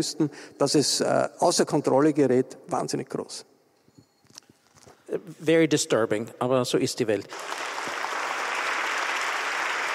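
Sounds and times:
speech: 0:00.0 - 0:03.5, 0:05.1 - 0:07.9
audience applause: 0:07.3 - 0:09.9.

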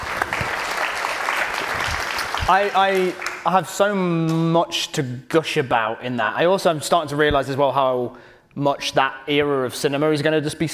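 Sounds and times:
round of applause, many hands clapping: 0:00.0 - 0:04.5
speech: 0:02.5 - 0:10.7.

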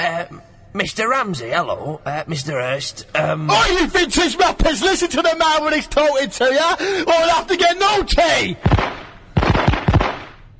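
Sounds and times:
speech: 0:00.0 - 0:08.9
rapid burst of gunfire: 0:08.6 - 0:10.5.

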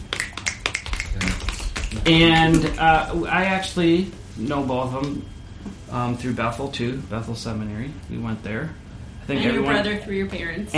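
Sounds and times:
audience finger snapping: 0:00.0 - 0:02.7
speech: 0:02.0 - 0:05.3, 0:05.9 - 0:10.7.

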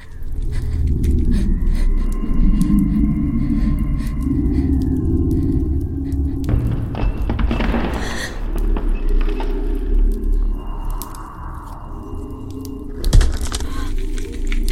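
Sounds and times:
heavy steady low rumble of an abandoned city atmosphere: 0:00.2 - 0:14.7.

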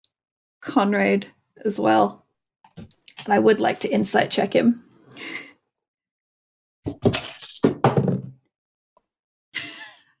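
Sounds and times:
speech: 0:00.6 - 0:02.2, 0:02.8 - 0:05.5
dice clattering across a hard surface: 0:07.0 - 0:07.9.

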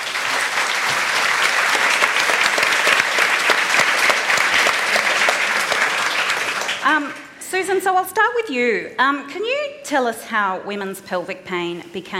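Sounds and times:
audience clapping at a live event: 0:00.0 - 0:07.4
speech: 0:06.9 - 0:12.1.

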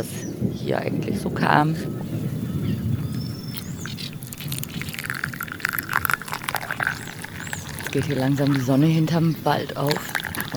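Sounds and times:
speech: 0:00.0 - 0:02.3, 0:07.9 - 0:10.5
coffee being poured into a cup: 0:03.5 - 0:10.5.

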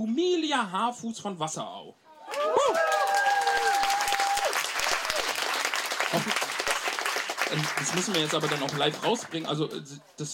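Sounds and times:
speech: 0:00.0 - 0:02.9, 0:07.5 - 0:10.3
crowd, audience applause and cheering: 0:02.2 - 0:09.7.

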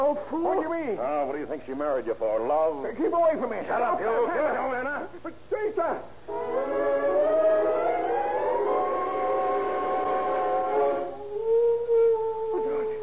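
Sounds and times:
speech: 0:00.0 - 0:07.2
dog howling: 0:06.6 - 0:13.0.

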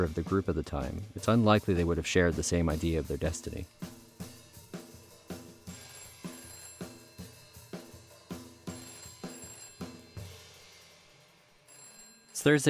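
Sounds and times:
speech: 0:00.0 - 0:04.0, 0:12.4 - 0:12.6
telephone ringing: 0:05.2 - 0:10.7, 0:11.6 - 0:12.6.

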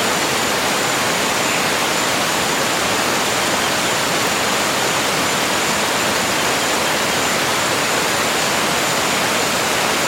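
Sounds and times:
tropical forest waterfall roaring in the Cardamom Mountains: 0:00.0 - 0:10.0.

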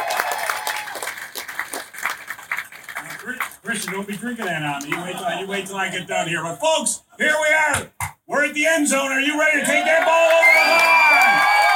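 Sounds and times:
audience applause: 0:00.0 - 0:05.1, 0:09.7 - 0:11.7
speech: 0:03.2 - 0:11.5.

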